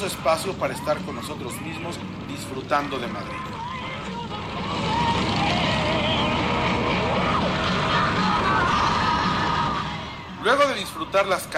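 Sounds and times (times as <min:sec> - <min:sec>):
speech: 0:00.0 - 0:03.7, 0:10.4 - 0:11.5
city road and traffic noise: 0:00.0 - 0:11.5
motorcycle engine riding through city streets: 0:00.0 - 0:11.5.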